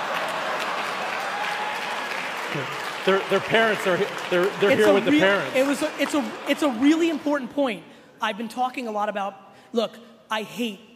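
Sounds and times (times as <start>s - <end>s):
lukewarm audience applause: 0.0s - 7.5s
speech: 2.5s - 10.9s.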